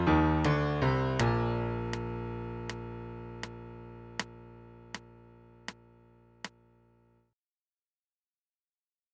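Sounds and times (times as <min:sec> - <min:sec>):
MIDI B-flat major scale at 80 bpm: 0:00.0 - 0:06.4.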